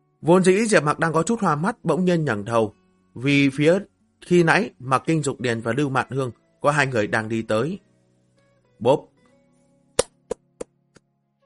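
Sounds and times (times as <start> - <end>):
speech: 0.2 - 7.8, 8.8 - 9.1
slow monotone hand claps: 10.0 - 11.1.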